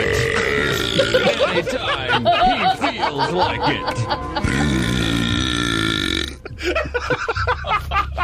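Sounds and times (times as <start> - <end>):
man burping loudly after swallowing air: 0.0 - 1.6, 4.4 - 6.6
laughter: 0.7 - 5.1, 6.4 - 8.2
speech: 3.1 - 5.0.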